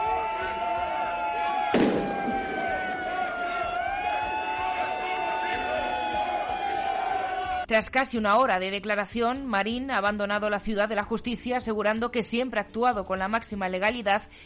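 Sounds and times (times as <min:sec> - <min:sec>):
crowd booing: 0:00.0 - 0:07.7
speech: 0:07.7 - 0:14.4.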